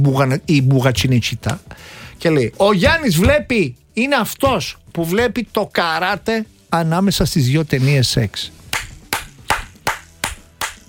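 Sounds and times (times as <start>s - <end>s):
speech: 0.0s - 8.6s
hands clapping: 8.7s - 10.8s.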